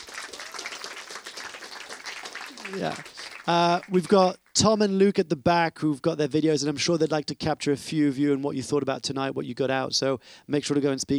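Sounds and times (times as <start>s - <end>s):
crowd applauding: 0.0s - 4.6s
speech: 2.7s - 11.1s.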